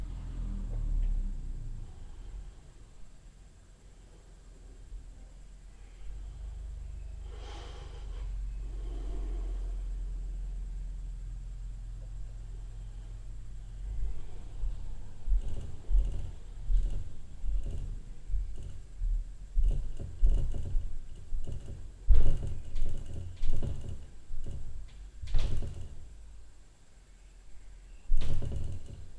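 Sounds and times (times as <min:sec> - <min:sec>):
low-frequency upstairs noise at night: 0:00.0 - 0:29.1
tapping knocks at night: 0:13.8 - 0:26.5, 0:28.1 - 0:29.1.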